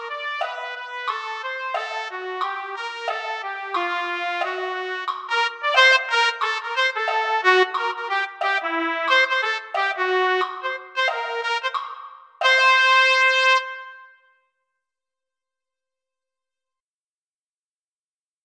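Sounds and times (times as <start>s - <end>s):
trumpet: 0.0s - 14.5s.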